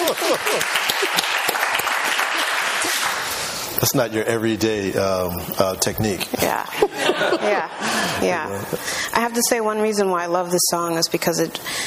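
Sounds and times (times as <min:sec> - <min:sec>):
laughter: 0:00.0 - 0:01.3, 0:06.8 - 0:08.3
crowd applauding: 0:00.0 - 0:03.6
speech: 0:00.3 - 0:01.4, 0:03.8 - 0:11.8.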